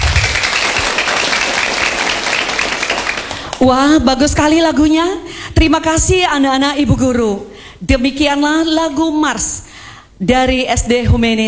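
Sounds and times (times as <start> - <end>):
applause: 0.0 - 3.7
speech: 3.6 - 11.4.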